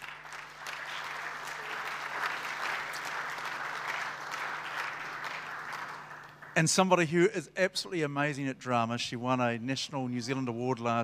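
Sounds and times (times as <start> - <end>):
audience applause greeting a man joining a panel: 0.0 - 6.6
speech: 6.6 - 11.0.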